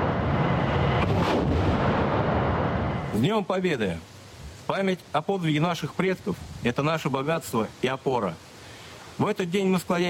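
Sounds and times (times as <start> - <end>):
artillery fire from mobile artillery systems: 0.0 - 3.1
sharper, brighter blast: 0.0 - 3.3
speech: 3.2 - 4.1, 4.7 - 8.5, 9.2 - 10.0.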